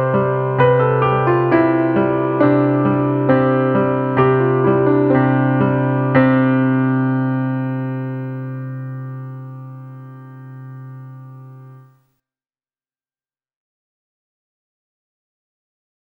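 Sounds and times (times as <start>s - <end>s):
solo piano: 0.0s - 11.9s.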